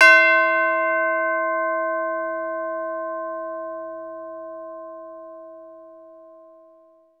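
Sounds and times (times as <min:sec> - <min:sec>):
chime: 0:00.0 - 0:07.1.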